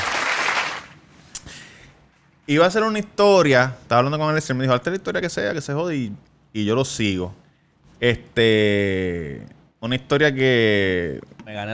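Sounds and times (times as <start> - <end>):
applause for the guest: 0.0 - 1.0
speech: 2.5 - 7.4, 8.0 - 11.7.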